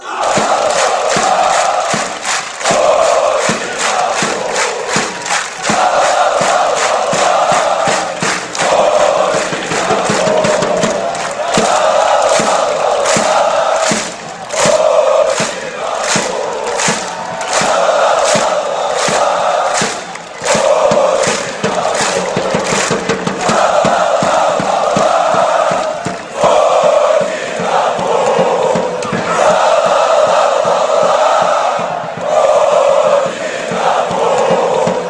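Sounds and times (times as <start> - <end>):
Kyiv football fans chanting: 0.0 - 35.0.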